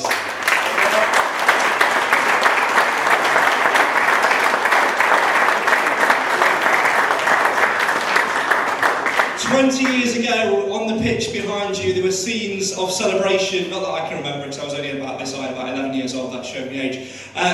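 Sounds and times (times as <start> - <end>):
round of applause: 0.0 - 10.0
speech: 9.6 - 17.5.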